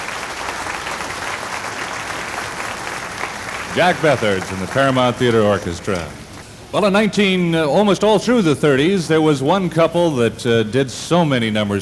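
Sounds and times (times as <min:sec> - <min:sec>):
audience applause for the band: 0:00.0 - 0:06.4
speech: 0:03.8 - 0:11.8.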